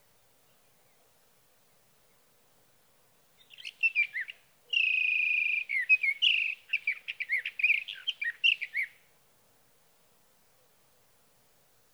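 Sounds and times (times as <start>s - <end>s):
Sage thrasher song: 3.4s - 8.9s.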